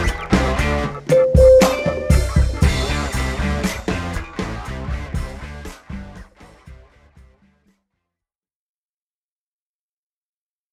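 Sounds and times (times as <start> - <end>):
instrumental music: 1.0 - 4.4.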